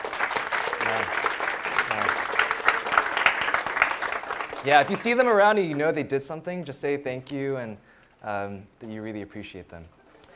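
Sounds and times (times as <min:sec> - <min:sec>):
crowd applauding: 0:00.0 - 0:05.8
speech: 0:04.6 - 0:10.0.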